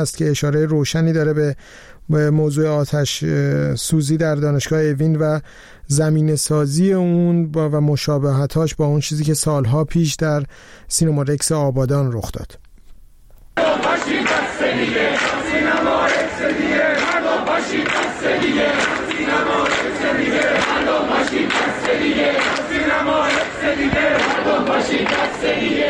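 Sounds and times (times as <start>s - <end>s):
speech: 0.0s - 12.6s, 13.6s - 15.7s
large crowd of students chanting a protest slogan: 13.6s - 25.8s.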